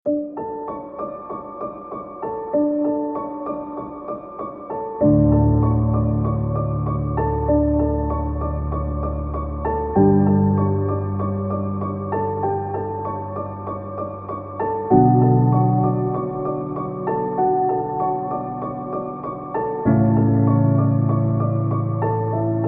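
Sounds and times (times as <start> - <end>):
accompanying background music: 0.1 - 22.6.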